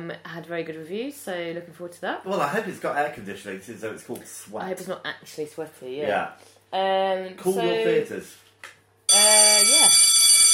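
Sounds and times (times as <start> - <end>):
speech: 0.1 - 10.1
theatre interval bell ringing: 9.1 - 10.5.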